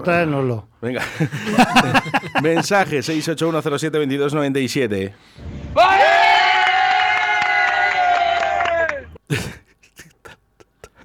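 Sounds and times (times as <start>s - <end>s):
speech: 0.0s - 6.2s
laughter: 1.0s - 3.6s, 8.6s - 11.0s
shouted burst: 5.4s - 9.2s
crowd of fans whooping cheer: 5.7s - 9.2s.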